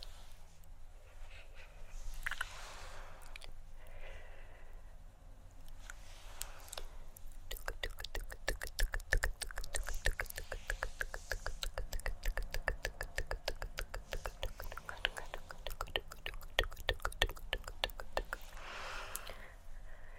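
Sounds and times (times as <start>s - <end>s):
tongue clicks: 2.2s - 2.5s, 5.7s - 18.6s, 19.1s - 19.4s
hand swishes: 8.3s - 16.0s.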